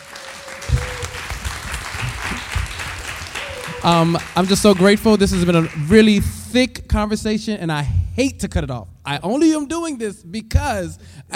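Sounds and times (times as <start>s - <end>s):
audience applause: 0.0s - 6.2s
speech: 3.8s - 11.3s.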